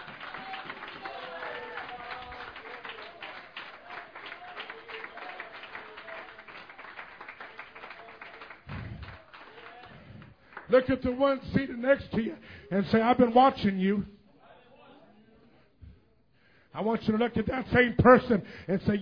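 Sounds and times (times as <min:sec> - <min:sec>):
audience hand clapping: 0:00.0 - 0:11.4
speech: 0:10.7 - 0:14.2, 0:16.8 - 0:18.9.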